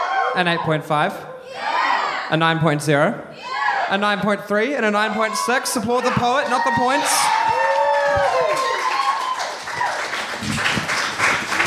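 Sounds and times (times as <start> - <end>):
speech: 0.4 - 1.6, 2.3 - 8.4
audience applause at poetry slam: 6.6 - 11.6.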